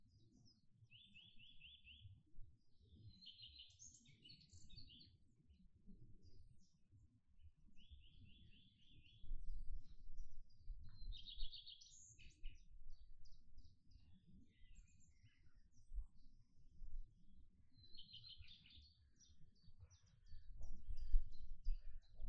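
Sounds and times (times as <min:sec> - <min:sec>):
birds singing in a garden: 0:00.3 - 0:05.6, 0:07.8 - 0:16.4, 0:17.7 - 0:22.2.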